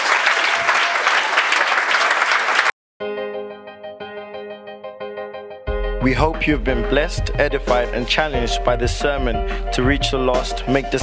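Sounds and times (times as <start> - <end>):
audience clapping: 0.0 - 2.8
speech: 6.0 - 11.0.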